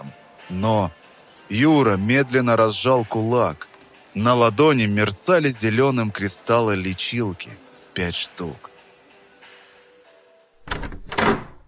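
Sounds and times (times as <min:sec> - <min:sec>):
speech: 0:00.5 - 0:08.7
door being opened: 0:10.6 - 0:11.6.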